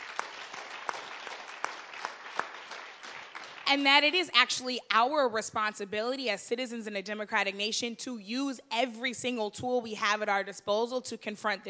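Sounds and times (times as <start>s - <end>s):
audience applause: 0.0s - 3.7s
speech: 3.7s - 11.6s.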